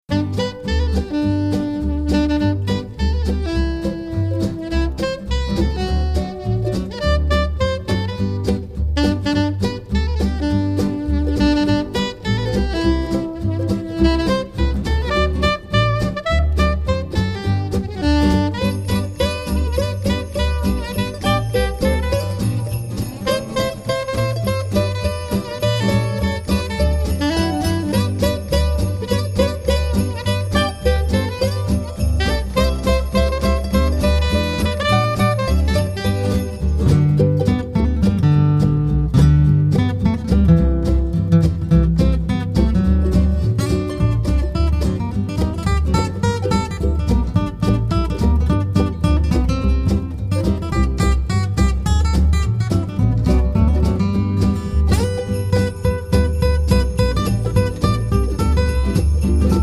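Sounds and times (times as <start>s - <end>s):
Christmas song: 0.1s - 59.6s.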